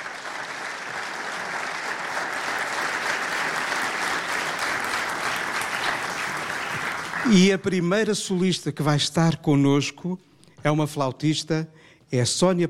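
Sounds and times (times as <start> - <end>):
audience applause: 0.0 - 7.6
speech: 7.3 - 12.6.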